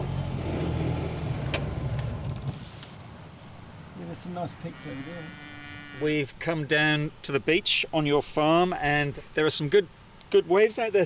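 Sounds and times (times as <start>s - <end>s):
side-by-side utility vehicle engine driving: 0.0s - 6.0s
speech: 4.2s - 5.4s, 6.0s - 11.0s.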